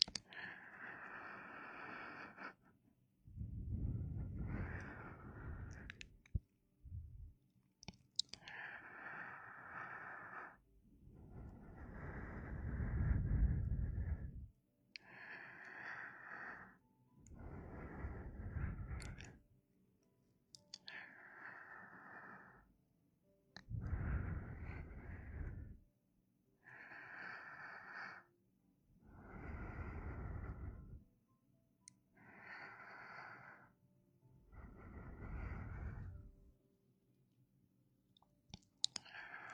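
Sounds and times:
mouth sounds and clicks: 0:00.0 - 0:00.5, 0:04.6 - 0:06.4, 0:07.8 - 0:08.6, 0:18.9 - 0:19.4, 0:20.5 - 0:21.0, 0:38.2 - 0:39.5
warm breathing at the ear: 0:00.0 - 0:07.4, 0:08.4 - 0:19.4, 0:20.6 - 0:22.8, 0:23.6 - 0:25.9, 0:26.6 - 0:28.4, 0:29.0 - 0:31.1, 0:32.1 - 0:36.5, 0:38.8 - 0:39.5.

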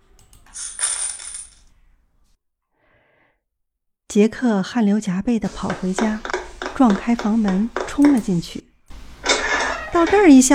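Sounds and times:
one hundred nickel coins poured onto a counter: 0:00.5 - 0:01.6
speech: 0:04.1 - 0:08.7, 0:09.9 - 0:10.5.

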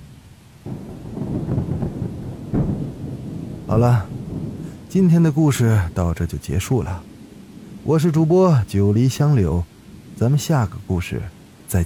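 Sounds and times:
heavy pouring rain: 0:00.0 - 0:11.8
thunder: 0:00.6 - 0:05.0
speech: 0:03.7 - 0:04.1, 0:04.9 - 0:07.1, 0:07.8 - 0:11.8.

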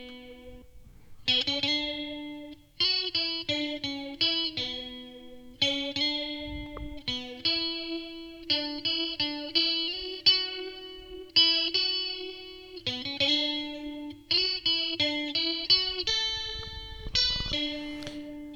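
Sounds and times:
clean electric guitar melody with sweeping metallic flanger modulation: 0:00.0 - 0:18.5.

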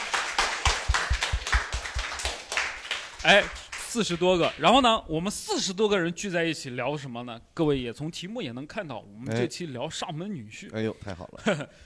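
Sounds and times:
small audience applause: 0:00.0 - 0:04.6
speech: 0:03.2 - 0:11.8.

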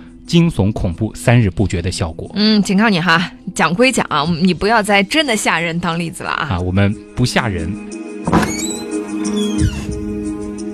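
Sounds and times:
speech: 0:00.3 - 0:08.6
door creaking and slamming shut: 0:08.2 - 0:10.0.

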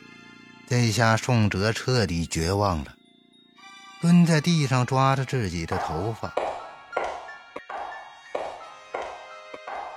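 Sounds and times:
speech: 0:00.7 - 0:03.0, 0:04.0 - 0:06.4
footsteps coming down the stairs: 0:05.7 - 0:09.9.

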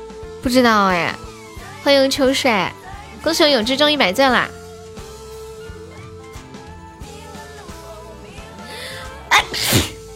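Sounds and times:
speech: 0:00.4 - 0:01.2, 0:01.8 - 0:04.6
sneeze: 0:09.3 - 0:10.0.

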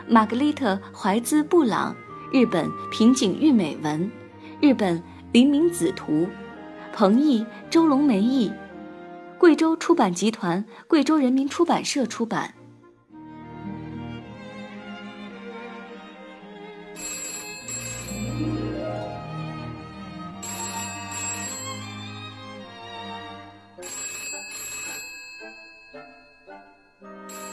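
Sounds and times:
speech: 0:00.0 - 0:06.4, 0:07.0 - 0:08.6, 0:09.4 - 0:12.6
telephone ringing: 0:17.0 - 0:19.1, 0:20.4 - 0:22.4, 0:23.5 - 0:27.5.

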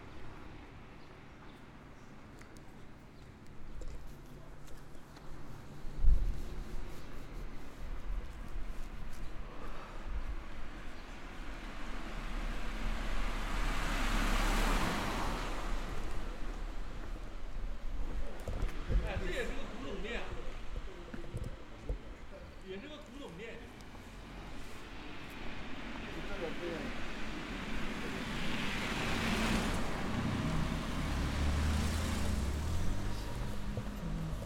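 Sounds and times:
low street rumble along Shinmachi-dori in Omihachiman: 0:00.0 - 0:34.4
vehicles passing on Shinmachi-dori: 0:00.0 - 0:34.4
scattered voices: 0:18.2 - 0:24.5, 0:26.0 - 0:28.9.

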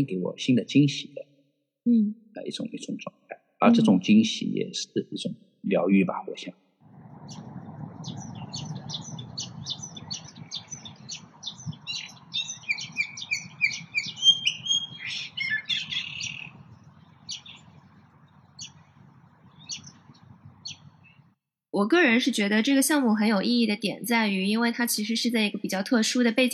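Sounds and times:
speech: 0:00.0 - 0:01.2, 0:01.8 - 0:06.6, 0:07.3 - 0:08.2, 0:21.8 - 0:26.5
recorded birdsong: 0:02.4 - 0:21.4
low steady hum: 0:06.9 - 0:21.3.

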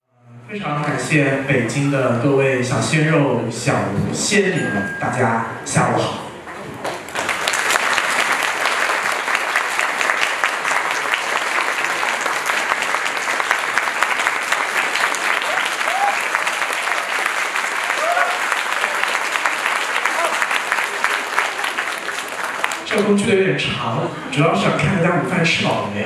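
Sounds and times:
speech: 0:00.5 - 0:06.2, 0:24.4 - 0:26.0
audience applause: 0:06.7 - 0:23.2.

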